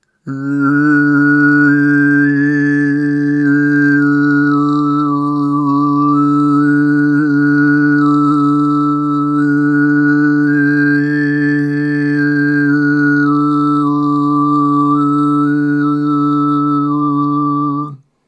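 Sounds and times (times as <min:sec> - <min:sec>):
overtone singing sound example for a hearing test: 0:00.2 - 0:18.0.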